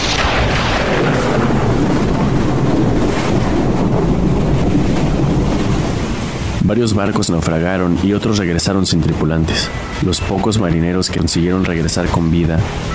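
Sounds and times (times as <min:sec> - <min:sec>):
heavy buffeting wind: 0:00.0 - 0:12.9
loud crashing waves in a stormy sea: 0:00.0 - 0:12.9
speech: 0:06.7 - 0:12.9.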